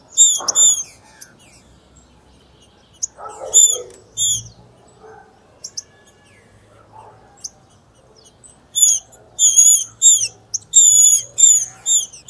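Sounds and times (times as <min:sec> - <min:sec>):
female green-winged saltator singing: 0:00.0 - 0:06.5, 0:07.4 - 0:12.2.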